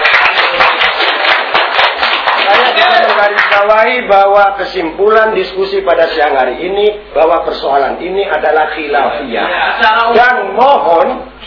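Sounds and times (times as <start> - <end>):
audience applause for two panel speakers: 0.0 - 3.7
speech: 3.2 - 11.3.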